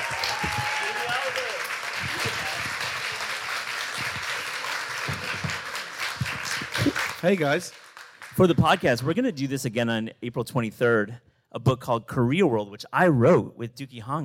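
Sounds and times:
audience applause welcoming guests at a live event: 0.0s - 8.9s
speech: 7.2s - 7.8s, 8.4s - 14.2s.

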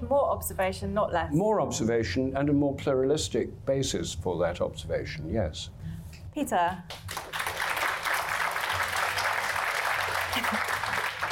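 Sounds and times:
speech: 0.1s - 7.2s
audience applause: 7.1s - 11.3s.

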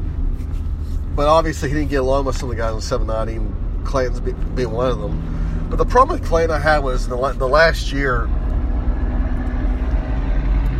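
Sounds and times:
big rig truck engine in bumper to bumper traffic: 0.0s - 10.7s
speech: 1.2s - 8.4s.

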